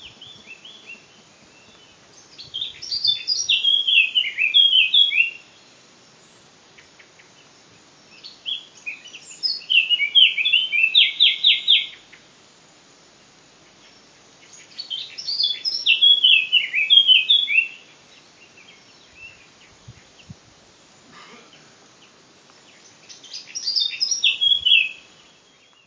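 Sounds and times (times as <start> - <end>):
Eurasian blackcap warbling song: 0.0 - 5.7, 8.1 - 12.2, 14.4 - 20.4, 21.5 - 25.8.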